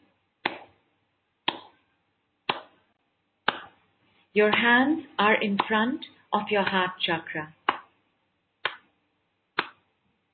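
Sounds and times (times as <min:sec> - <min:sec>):
slow hand claps: 0:01.4 - 0:01.8, 0:02.5 - 0:02.8, 0:03.4 - 0:03.8, 0:07.6 - 0:08.0, 0:08.6 - 0:09.0, 0:09.6 - 0:09.9
speech: 0:04.4 - 0:07.6.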